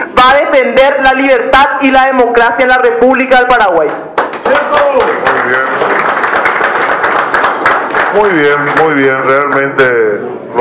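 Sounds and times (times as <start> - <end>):
speech: 0.2 - 5.7, 8.2 - 10.6
applause for the young people: 4.2 - 9.7.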